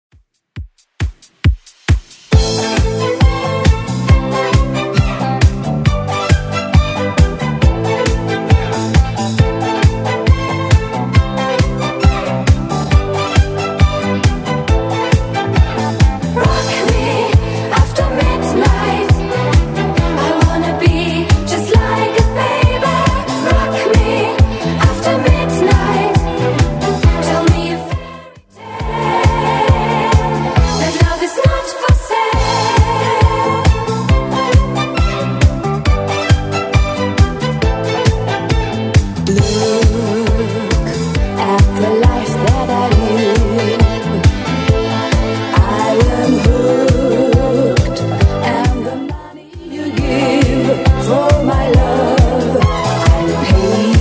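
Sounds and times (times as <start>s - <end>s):
80s style music at 136 bpm: 0.1s - 53.9s.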